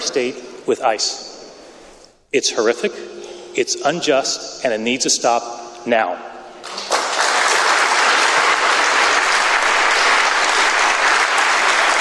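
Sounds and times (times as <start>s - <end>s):
speech: 0.1s - 1.3s, 2.3s - 6.8s
audience applause: 6.6s - 11.9s.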